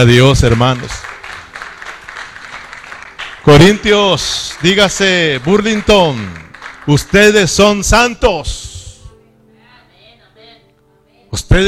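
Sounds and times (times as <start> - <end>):
speech: 0.0 - 1.1, 3.4 - 8.6, 11.3 - 11.6
audience applauding: 0.0 - 7.9.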